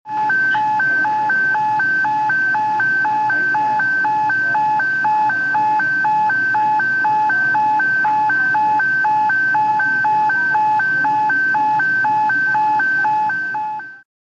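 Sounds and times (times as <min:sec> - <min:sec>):
hospital intensive care unit background noise: 0:00.1 - 0:13.9
transcutaneous monitor alarm in hospital intensive care unit: 0:00.1 - 0:14.1.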